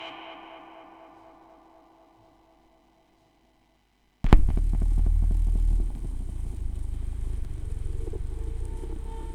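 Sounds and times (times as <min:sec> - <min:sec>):
vinyl record noise: 0:04.3 - 0:09.3.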